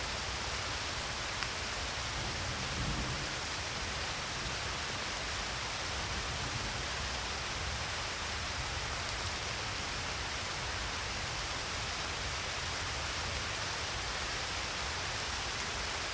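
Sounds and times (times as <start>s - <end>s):
rain in the Alps: 0.0s - 16.1s.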